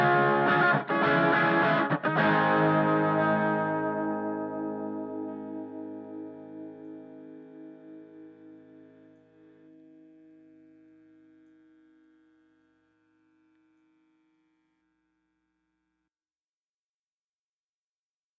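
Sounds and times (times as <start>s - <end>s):
guitar bus with reverb and no compression: 0.0s - 12.1s.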